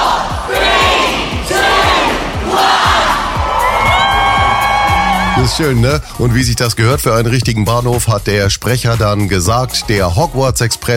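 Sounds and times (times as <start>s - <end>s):
crowd of fans shouting a countdown: 0.0s - 5.4s
speech: 5.5s - 10.9s.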